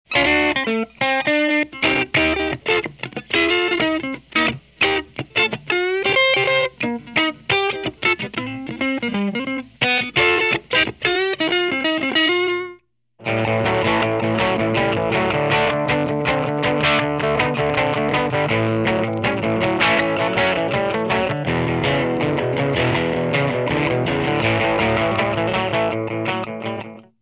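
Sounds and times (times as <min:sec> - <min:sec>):
dirty AC-30 guitar amplifier: 0:00.1 - 0:27.2.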